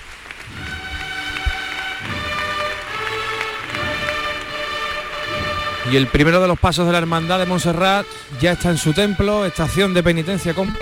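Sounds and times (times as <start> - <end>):
applause in the street Cristo del Calvario: 0.0 - 8.2
speech: 5.9 - 10.8.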